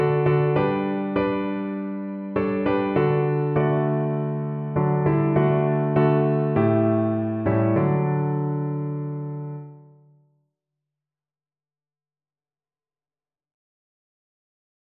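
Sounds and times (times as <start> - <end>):
hymn on piano: 0.0 - 9.9.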